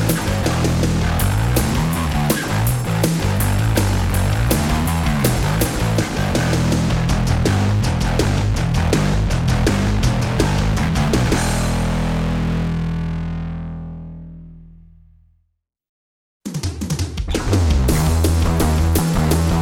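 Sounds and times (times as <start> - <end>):
bass tone demo: 0.0 - 15.3, 17.3 - 19.6.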